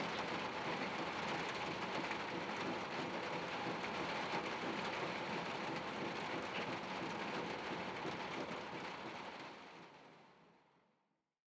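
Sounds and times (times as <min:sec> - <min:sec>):
rain on a sheet metal roof heard from inside a bathroom: 0:00.1 - 0:09.5.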